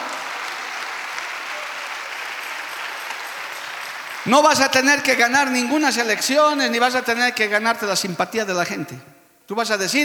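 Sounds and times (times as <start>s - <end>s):
audience applause: 0.0s - 5.2s
speech: 4.2s - 10.0s.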